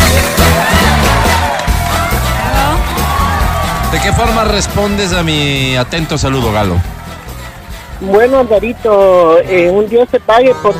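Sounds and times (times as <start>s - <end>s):
audience applause: 0.0s - 7.4s
speech: 4.1s - 7.0s, 8.0s - 10.7s.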